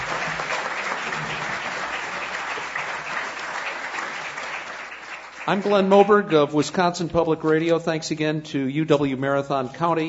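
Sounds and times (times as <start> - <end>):
audience applause: 0.0 - 6.6
speech: 5.5 - 10.0.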